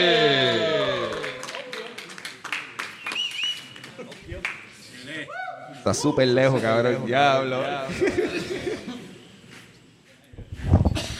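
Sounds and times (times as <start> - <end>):
voices and cheers: 0.0 - 2.1
audience applause: 0.4 - 4.6
speech: 5.9 - 8.5
laughter: 6.4 - 9.6.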